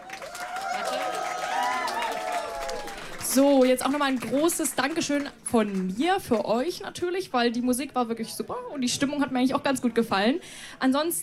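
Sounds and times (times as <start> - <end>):
cheering voices: 0.0 - 3.4
audience applause: 0.0 - 6.0
speech: 3.3 - 11.2.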